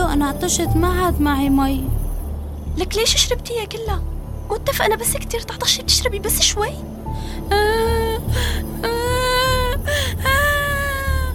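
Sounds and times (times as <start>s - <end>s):
speech: 0.2s - 2.0s, 2.8s - 9.1s
child crying: 7.5s - 11.3s.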